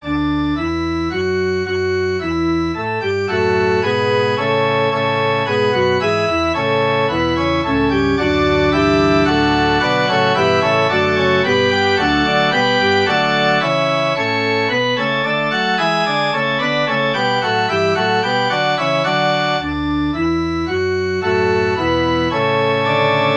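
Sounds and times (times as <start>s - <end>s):
musical prelude: 0.0s - 23.3s.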